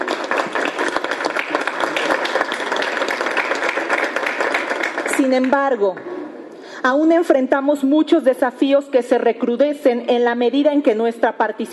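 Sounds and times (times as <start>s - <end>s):
crowd applause: 0.0s - 5.4s
speech: 5.2s - 6.1s, 6.8s - 11.7s.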